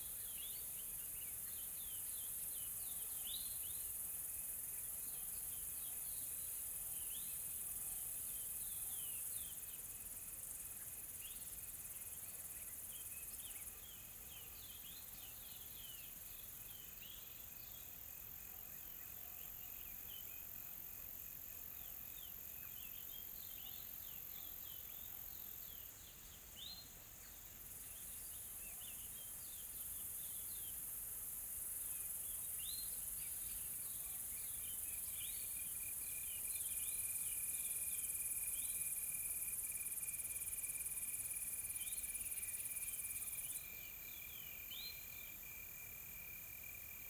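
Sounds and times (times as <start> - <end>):
insects droning: 0.0 - 47.0.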